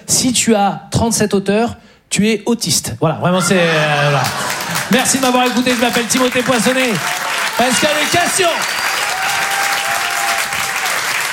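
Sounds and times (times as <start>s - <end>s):
speech: 0.1s - 8.9s
laughter: 3.5s - 5.4s
audience applause for a comedy show MC: 4.1s - 11.3s.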